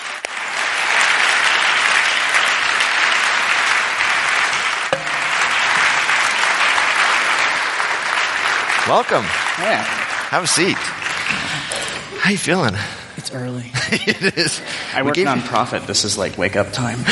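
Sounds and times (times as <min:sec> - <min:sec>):
Friend Church audience clapping to welcome a guest: 0:00.0 - 0:12.8
sharp knock: 0:04.9 - 0:06.0
speech: 0:08.9 - 0:11.6, 0:12.3 - 0:17.0
laughter: 0:13.7 - 0:16.0.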